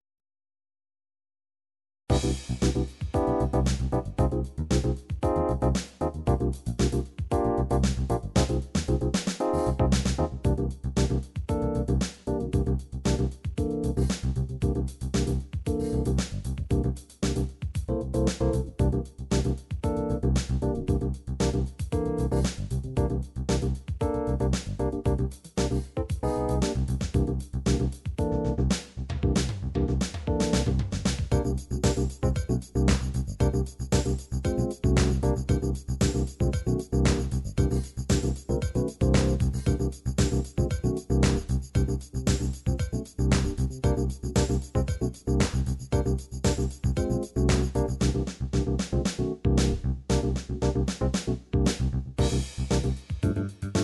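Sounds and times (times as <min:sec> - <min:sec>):
dance funk MIDI music: 0:02.1 - 0:53.8.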